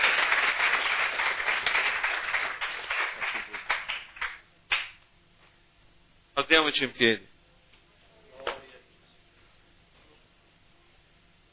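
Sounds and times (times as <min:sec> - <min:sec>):
audience applause: 0:00.0 - 0:04.8
speech: 0:06.5 - 0:07.3.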